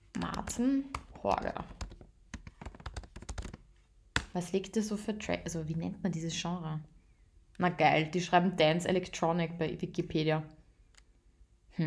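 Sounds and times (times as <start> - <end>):
rapid typing on a computer keyboard during a Google search: 0.2 - 3.6
speech: 0.5 - 1.8, 4.4 - 6.9, 7.6 - 10.6.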